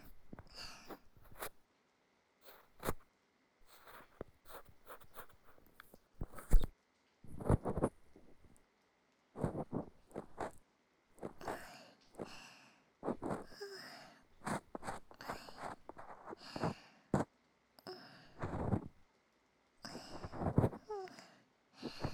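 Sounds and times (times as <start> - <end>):
nurse cleaning ears: 0.0 - 1.5, 2.4 - 3.0, 3.7 - 5.6, 6.2 - 6.7, 7.3 - 8.4, 9.4 - 10.6, 11.2 - 12.4, 13.0 - 13.6, 14.4 - 16.7, 18.4 - 18.9, 19.9 - 20.8.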